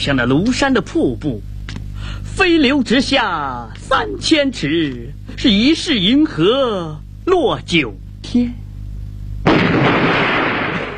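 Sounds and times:
speech: 0:00.0 - 0:01.5, 0:02.1 - 0:08.6
low hum: 0:00.0 - 0:10.9
loud bomb blast from aircraft bombing: 0:09.4 - 0:10.9.

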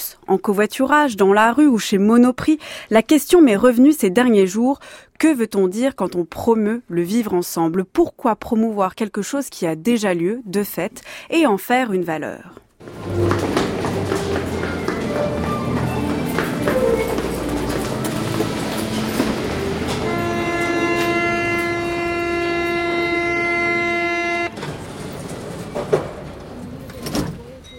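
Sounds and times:
speech: 0:00.2 - 0:13.2
metro train running: 0:12.8 - 0:26.9.

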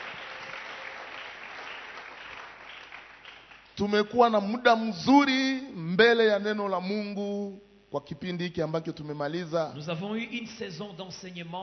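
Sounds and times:
church congregation applauding during Sunday worship service: 0:00.0 - 0:04.1
speech: 0:03.8 - 0:11.6.

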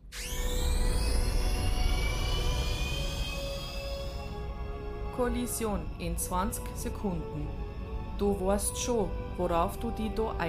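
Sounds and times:
escape capsule launching radio-play sound effect: 0:00.0 - 0:05.1
speech: 0:05.2 - 0:07.6, 0:08.2 - 0:10.4.

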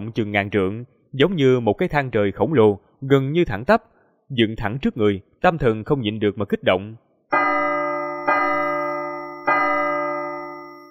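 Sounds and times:
speech: 0:00.0 - 0:07.4
bell tolling on a mountain top: 0:07.3 - 0:10.8.

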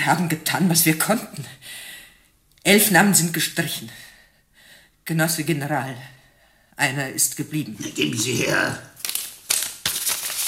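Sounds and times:
speech: 0:00.0 - 0:01.9, 0:02.6 - 0:04.1, 0:05.1 - 0:06.2, 0:06.8 - 0:09.0
envelope being torn open: 0:08.0 - 0:10.4.

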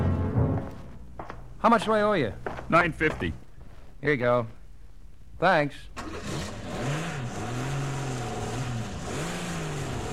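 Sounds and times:
speech: 0:01.6 - 0:03.4, 0:04.0 - 0:04.6, 0:05.4 - 0:06.3
car engine revving in first gear driving down a hill: 0:06.0 - 0:10.1.

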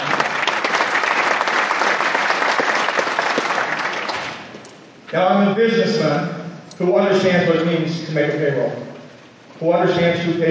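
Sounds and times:
crowd clapping: 0:00.0 - 0:04.7
speech: 0:05.1 - 0:08.9, 0:09.6 - 0:10.4.

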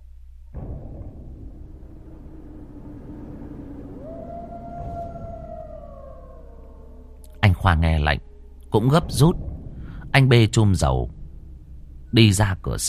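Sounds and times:
low steady rumble: 0:00.0 - 0:12.8
eerie ghostly howl: 0:01.6 - 0:10.1
speech: 0:07.6 - 0:09.5, 0:10.1 - 0:11.2, 0:12.1 - 0:12.8.

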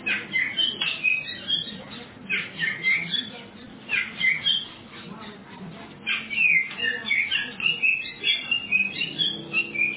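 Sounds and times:
Oriental magpie-robin song: 0:00.0 - 0:09.9.

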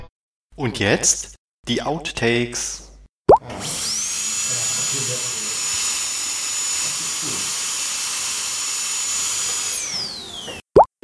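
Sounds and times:
speech: 0:00.7 - 0:03.9
dental drill running: 0:03.5 - 0:10.7.

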